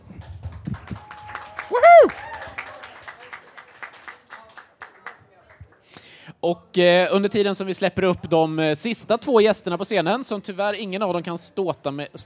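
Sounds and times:
audience applause: 0.2 - 5.2
speech: 6.4 - 12.2.

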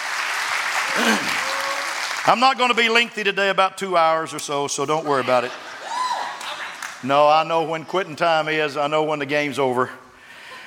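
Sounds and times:
audience clapping: 0.0 - 3.0, 6.2 - 7.0
speech: 1.0 - 1.4, 2.3 - 5.7, 7.0 - 10.0.

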